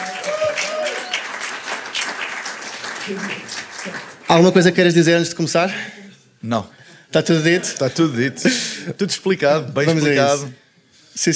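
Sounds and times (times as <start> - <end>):
audience applause: 0.0 - 4.8
speech: 3.1 - 10.6, 11.2 - 11.3.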